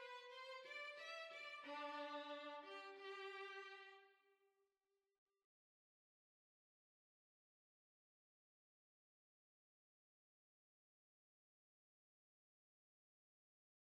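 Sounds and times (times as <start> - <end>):
violin: 0.0 - 4.1.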